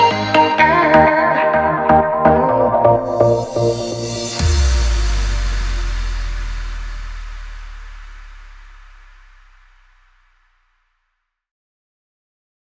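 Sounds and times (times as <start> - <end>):
deep house music: 0.0 - 9.8.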